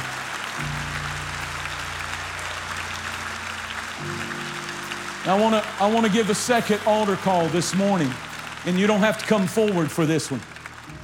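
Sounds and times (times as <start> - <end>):
church audience clapping: 0.0 - 11.0
low organ or keyboard tones: 0.0 - 11.0
speech: 5.2 - 10.5.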